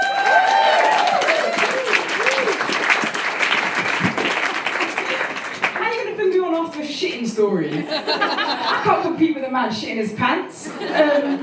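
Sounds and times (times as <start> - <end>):
audience applause: 0.0 - 6.2
speech: 7.4 - 11.4
laughter: 7.7 - 9.2, 10.6 - 11.4.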